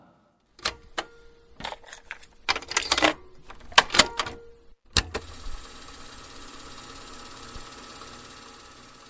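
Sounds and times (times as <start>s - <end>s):
cassette player buttons clicking as tape is loaded: 0.6s - 5.2s
cassette tape fast-forwarding in cassette player: 4.9s - 9.0s.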